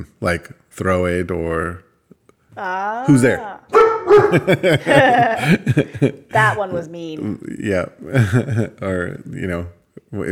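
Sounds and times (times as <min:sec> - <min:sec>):
speech: 0:00.0 - 0:01.9, 0:02.6 - 0:10.2
dog barking: 0:03.7 - 0:04.5
laughter: 0:04.1 - 0:06.4, 0:08.0 - 0:09.2.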